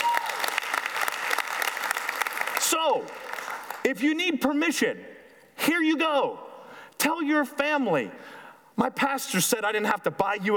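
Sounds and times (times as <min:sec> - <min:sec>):
audience applause during a church sermon: 0:00.0 - 0:03.8
speech: 0:02.7 - 0:03.3, 0:03.9 - 0:06.4, 0:07.0 - 0:10.5.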